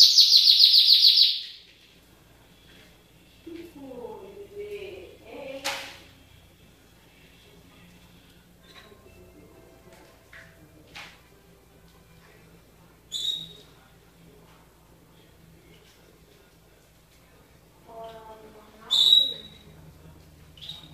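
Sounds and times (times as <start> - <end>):
canary song with fast rolling trill: 0.0 - 1.6, 13.1 - 13.7, 18.9 - 19.8, 20.6 - 20.9.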